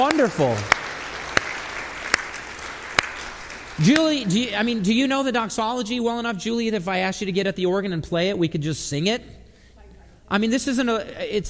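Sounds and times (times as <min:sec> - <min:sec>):
speech: 0:00.0 - 0:00.8, 0:03.8 - 0:09.4, 0:10.3 - 0:11.4
audience clapping at a gathering of thanks: 0:00.0 - 0:04.4
hiss: 0:00.0 - 0:11.4.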